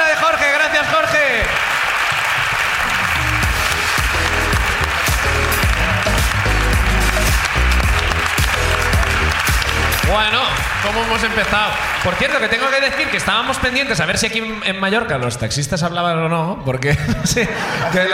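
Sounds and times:
audience applause: 0:00.0 - 0:14.1
voices cheering: 0:00.0 - 0:14.2
speech: 0:10.9 - 0:18.1
laughter: 0:16.8 - 0:18.1.

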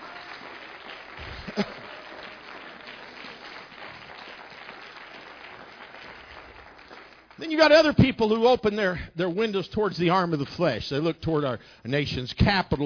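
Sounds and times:
audience clapping hands in praise: 0:00.0 - 0:09.0
speech: 0:01.6 - 0:01.8, 0:07.5 - 0:12.8.

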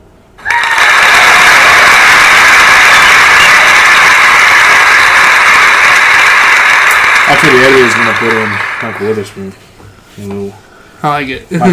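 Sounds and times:
smart speaker playing recorded hand clapping: 0:00.4 - 0:09.4
speech: 0:07.5 - 0:09.6, 0:10.2 - 0:11.7.

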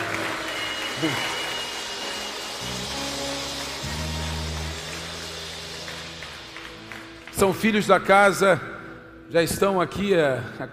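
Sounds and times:
audience applause: 0:00.0 - 0:07.7
low sustained musical tones: 0:00.0 - 0:10.7
speech: 0:01.0 - 0:01.3, 0:07.4 - 0:08.7, 0:09.3 - 0:10.7.

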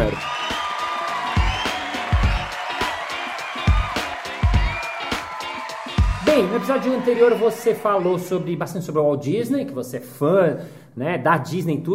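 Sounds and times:
audience applause: 0:00.0 - 0:08.5
speech: 0:06.4 - 0:11.9.

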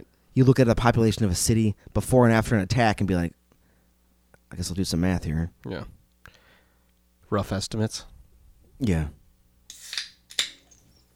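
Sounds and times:
speech: 0:00.4 - 0:03.4, 0:04.5 - 0:06.0, 0:07.3 - 0:08.1, 0:08.8 - 0:09.2
nitro Guinness can cracking open: 0:09.7 - 0:10.8.

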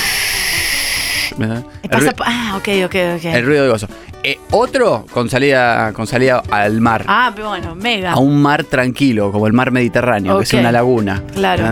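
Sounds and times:
voice imitating a rushing mountain river: 0:00.0 - 0:01.4
speech: 0:01.4 - 0:11.6.

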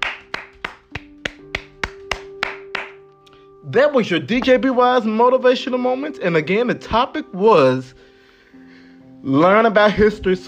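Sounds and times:
people applauding: 0:00.0 - 0:03.0
speech: 0:03.6 - 0:08.0, 0:09.2 - 0:10.4.

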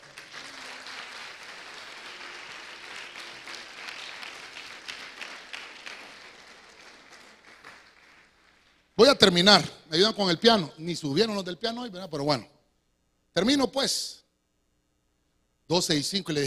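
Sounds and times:
audience clapping loudly: 0:00.0 - 0:09.0
speech: 0:09.0 - 0:12.6, 0:13.4 - 0:14.2, 0:15.7 - 0:16.4.

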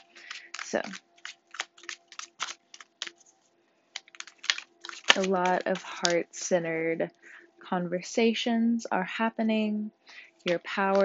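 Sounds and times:
Star Spinner tarot deck shuffling: 0:00.0 - 0:06.2, 0:10.5 - 0:11.0
speech: 0:00.7 - 0:01.1, 0:05.2 - 0:11.0.

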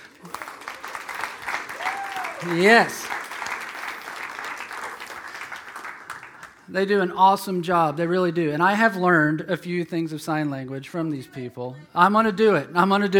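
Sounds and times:
audience applause: 0:00.0 - 0:06.7
speech: 0:02.4 - 0:03.2, 0:06.7 - 0:13.1.

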